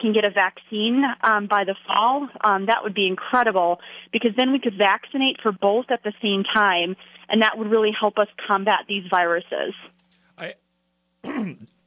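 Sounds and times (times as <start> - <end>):
speech: 0.0 - 10.6, 11.2 - 11.7
cough: 11.3 - 11.6.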